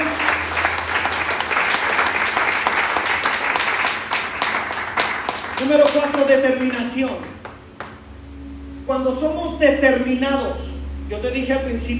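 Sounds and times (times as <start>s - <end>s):
audience applauding: 0.0s - 8.0s
speech: 5.6s - 7.4s, 8.9s - 11.9s.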